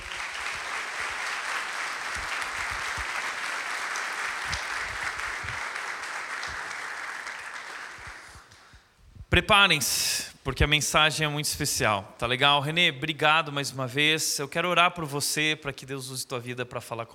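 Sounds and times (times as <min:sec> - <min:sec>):
audience applause: 0:00.0 - 0:08.7
speech: 0:09.3 - 0:17.1.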